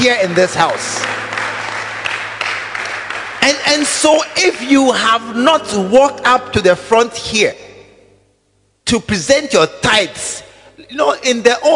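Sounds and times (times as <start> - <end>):
speech: 0.0 - 1.2, 3.4 - 7.6, 8.9 - 11.7
audience clapping: 0.0 - 4.7.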